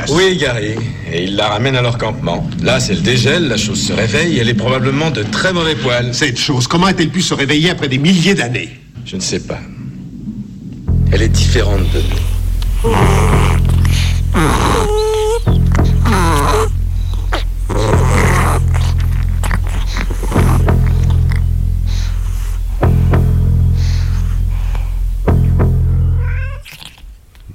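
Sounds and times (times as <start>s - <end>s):
low rumbling drone: 0.0s - 6.4s, 8.8s - 26.6s
speech: 0.1s - 9.8s, 11.1s - 13.7s, 14.4s - 15.0s
cat making warbling yowls and chirping cries: 14.4s - 20.2s, 26.0s - 27.0s.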